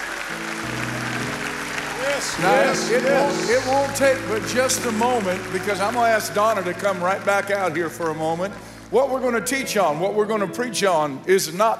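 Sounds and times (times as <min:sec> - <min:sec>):
crowd clapping: 0:00.0 - 0:09.3
sustained low organ-like tones: 0:00.1 - 0:11.7
speech: 0:02.2 - 0:11.7.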